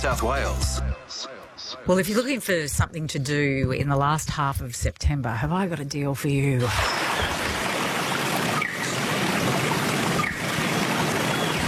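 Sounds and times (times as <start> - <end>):
speech: 0.0 - 7.4
Wollombi Brook water trickling and flowing: 6.6 - 11.6.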